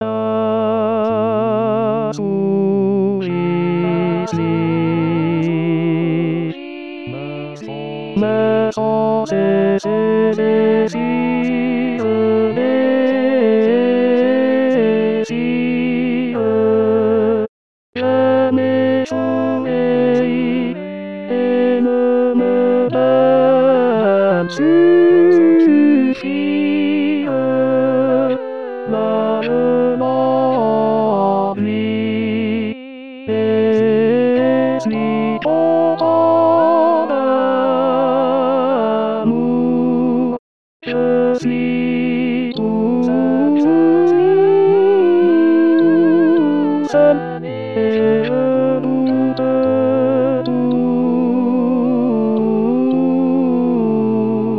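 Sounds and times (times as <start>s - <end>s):
tenor singing: 0.0s - 17.4s, 18.0s - 54.5s.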